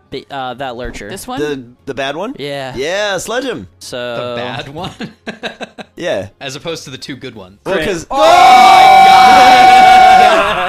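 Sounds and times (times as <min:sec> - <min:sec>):
speech: 0:00.1 - 0:10.6
laughter: 0:04.5 - 0:06.0, 0:10.2 - 0:10.6
group screaming in excitement: 0:08.1 - 0:10.6.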